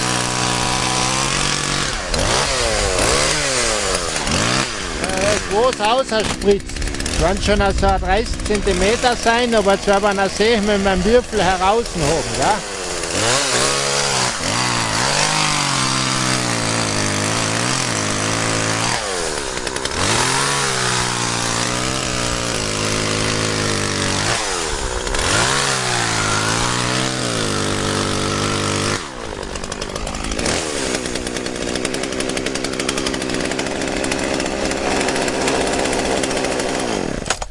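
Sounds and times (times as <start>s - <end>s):
chainsaw cutting a block out of ice: 0.0s - 37.5s
speech: 5.6s - 13.8s.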